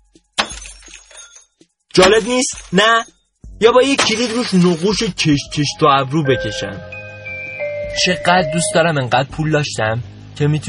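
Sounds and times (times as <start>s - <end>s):
car window glass shattering: 0.4s - 1.4s, 3.8s - 5.1s
crackling tinkling glass fragments: 0.4s - 3.2s, 4.0s - 5.2s
speech: 2.0s - 6.9s, 8.0s - 10.6s.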